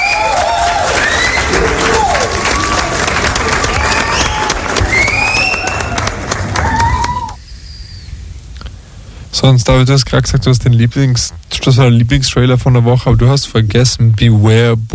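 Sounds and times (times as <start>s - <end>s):
crowd applause: 0.0s - 7.4s
crowd whistles and cheering: 0.0s - 8.1s
speech: 9.4s - 14.9s.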